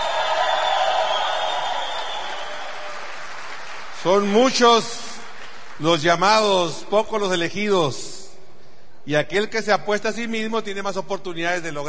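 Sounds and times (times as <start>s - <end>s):
audience applause: 0.0s - 6.5s
speech: 4.0s - 5.0s, 5.8s - 8.1s, 9.0s - 11.8s.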